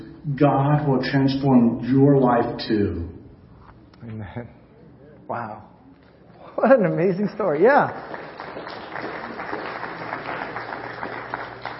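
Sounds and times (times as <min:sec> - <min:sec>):
speech: 0:00.2 - 0:03.2, 0:04.0 - 0:04.6, 0:05.3 - 0:05.7, 0:06.6 - 0:09.1
audience applause: 0:07.6 - 0:11.7.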